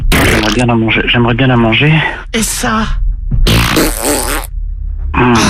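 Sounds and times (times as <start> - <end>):
fart: 0.1 - 0.6, 3.5 - 4.5
speech: 0.6 - 3.4, 5.2 - 5.4.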